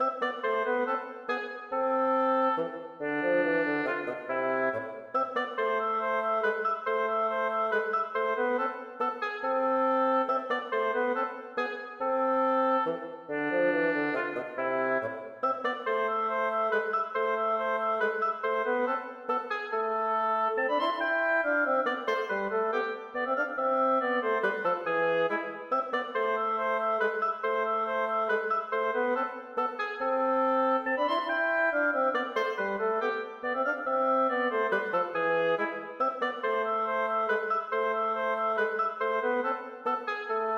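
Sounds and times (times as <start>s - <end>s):
oboe and bassoon playing a minuet: 0.0s - 40.5s.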